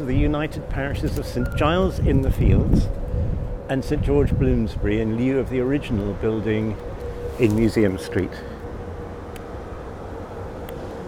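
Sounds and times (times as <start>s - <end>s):
speech: 0.0s - 3.0s, 3.7s - 8.5s
large car driving through a narrow small street: 0.0s - 11.0s.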